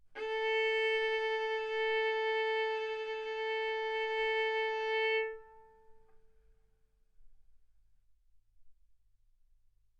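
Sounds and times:
violin bowed mezzo-forte on the A string, A4 and B4: 0:00.2 - 0:06.1.

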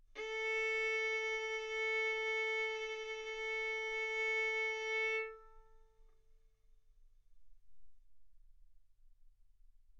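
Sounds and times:
violin bowed arco notes: 0:00.2 - 0:06.0.

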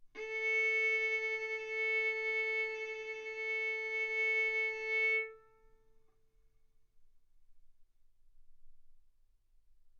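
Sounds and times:
violin bowed arco notes: 0:00.2 - 0:05.7.

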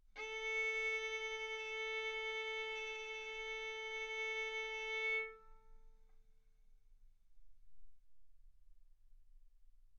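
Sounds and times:
violin arco on A string: 0:00.2 - 0:05.7.

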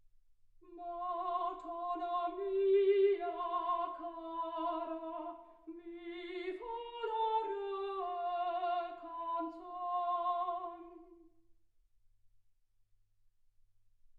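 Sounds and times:
soprano singing: 0:00.6 - 0:11.3.

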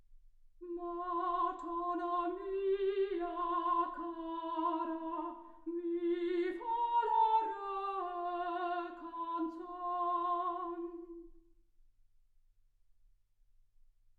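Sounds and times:
soprano singing: 0:00.6 - 0:11.3.

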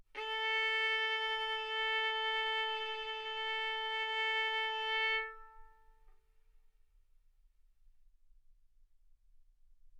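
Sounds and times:
violin bowed mezzo-forte on the A string, A4 and B4: 0:00.2 - 0:06.1.

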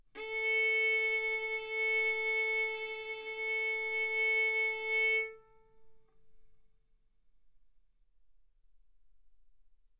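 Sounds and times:
violin arco on A string: 0:00.2 - 0:05.7.

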